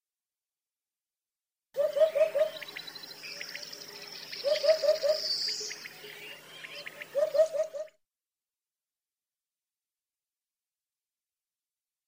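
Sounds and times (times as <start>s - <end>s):
hoopoe calling: 1.8s - 7.9s.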